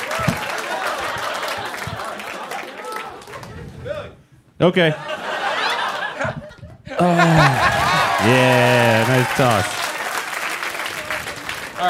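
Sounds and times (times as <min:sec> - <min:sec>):
laughter: 0:00.0 - 0:03.3, 0:04.8 - 0:10.2
audience cheering and applause: 0:00.0 - 0:03.6, 0:06.9 - 0:11.8
speech: 0:04.6 - 0:05.1, 0:07.0 - 0:09.8.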